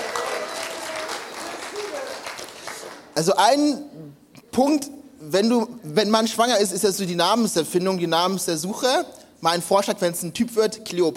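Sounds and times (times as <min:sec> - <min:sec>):
applause: 0:00.0 - 0:03.2
speech: 0:03.2 - 0:04.0, 0:04.6 - 0:11.1.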